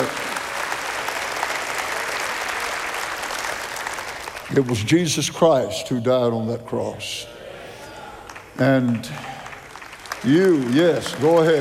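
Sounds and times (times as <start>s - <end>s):
audience clapping: 0.0s - 5.2s, 8.1s - 11.5s
speech: 4.5s - 7.3s, 8.6s - 9.3s, 10.2s - 11.5s.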